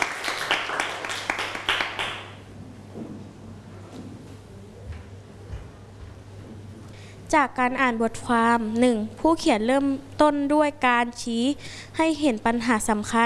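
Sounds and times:
audience clapping: 0:00.0 - 0:02.5
low hum: 0:00.0 - 0:13.2
speech: 0:07.3 - 0:13.2.

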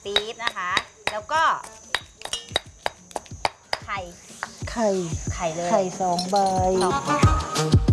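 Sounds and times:
pounding curry paste in a mortar: 0:00.0 - 0:04.6
speech: 0:04.0 - 0:07.8.

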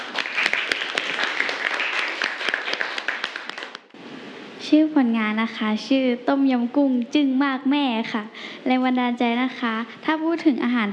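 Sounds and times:
classroom applause: 0:00.0 - 0:03.9
speech: 0:04.7 - 0:10.9.

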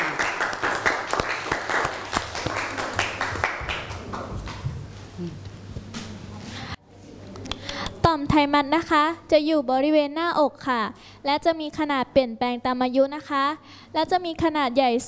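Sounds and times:
audience applause: 0:00.0 - 0:04.6
speech: 0:08.4 - 0:15.0.

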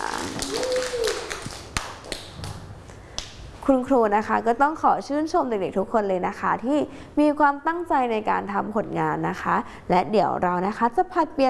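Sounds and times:
children clapping: 0:00.0 - 0:02.6
speech: 0:03.7 - 0:11.4.

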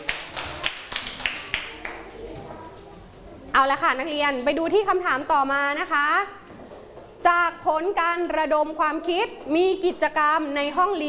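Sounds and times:
students clapping: 0:00.0 - 0:02.4
speech: 0:03.6 - 0:06.4, 0:07.2 - 0:11.0.

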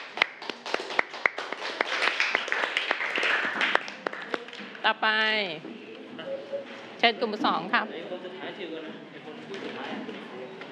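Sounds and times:
classroom clapping for a group: 0:00.0 - 0:04.8
speech: 0:04.9 - 0:10.4.

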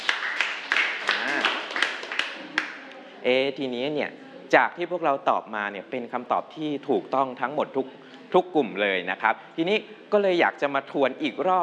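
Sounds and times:
group applauding: 0:00.0 - 0:03.0
faint murmuring voices: 0:01.0 - 0:10.4
speech: 0:03.2 - 0:11.6.

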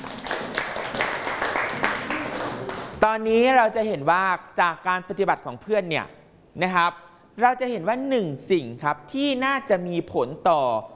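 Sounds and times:
students in a classroom clapping for a classmate: 0:00.0 - 0:03.0
speech: 0:03.1 - 0:10.9.

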